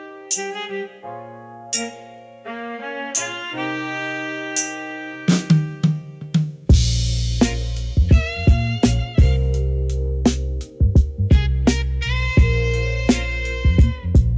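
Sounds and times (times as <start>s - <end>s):
boom bap beat: 4.6s - 14.3s.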